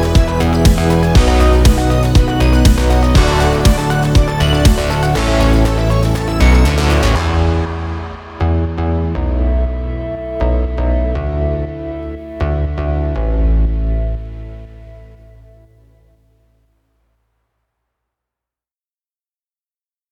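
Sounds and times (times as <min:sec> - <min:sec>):
indie electro sport commercial music: 0:00.0 - 0:15.5.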